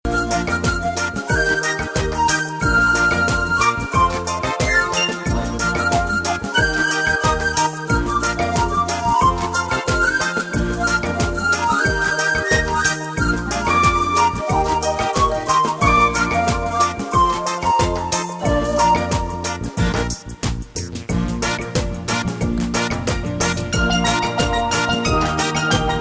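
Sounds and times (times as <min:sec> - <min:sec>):
happy limbo music: 0:00.0 - 0:25.9.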